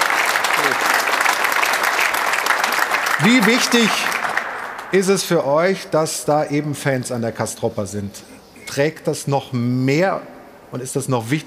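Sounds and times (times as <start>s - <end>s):
audience applause: 0.0s - 5.2s
speech: 3.2s - 4.2s, 4.9s - 11.4s.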